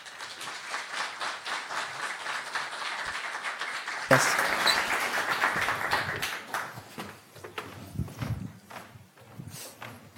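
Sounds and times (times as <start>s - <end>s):
audience applause welcoming guests to a stage: 0.0s - 7.0s.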